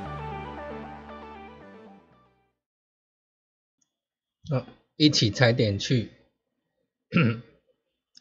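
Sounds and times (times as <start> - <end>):
speech: 4.5 - 6.2, 7.1 - 7.5
person coughing suddenly: 7.1 - 7.5.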